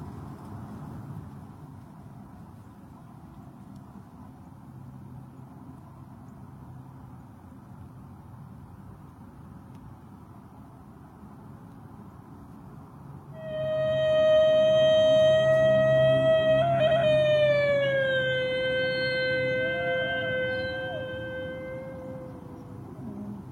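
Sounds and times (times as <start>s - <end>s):
pack of wolves howling in chorus: 13.5s - 23.5s.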